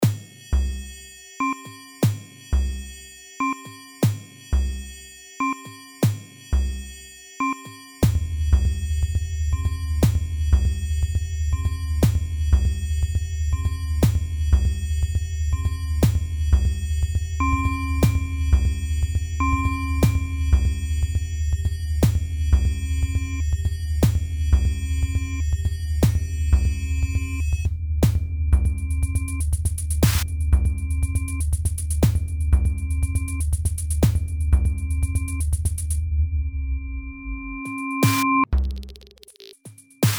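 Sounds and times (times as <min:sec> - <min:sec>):
Waldorf Rack Attack percussion synthesizer module: 0:00.0 - 0:36.0, 0:37.3 - 0:40.1.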